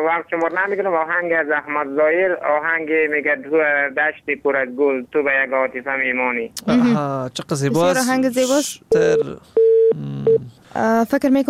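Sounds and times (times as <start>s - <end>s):
speech: 0.0s - 11.4s
brief second beep: 8.9s - 10.4s
telephone line tone after a radio caller's call dropped: 8.9s - 10.5s.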